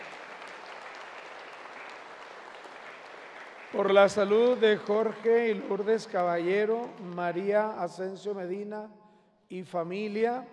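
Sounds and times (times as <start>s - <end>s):
applause: 0.0s - 8.3s
speech: 3.7s - 10.5s.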